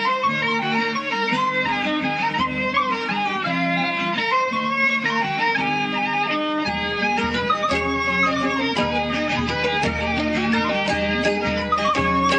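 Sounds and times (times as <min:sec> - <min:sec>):
mazurka music: 0:00.0 - 0:12.3.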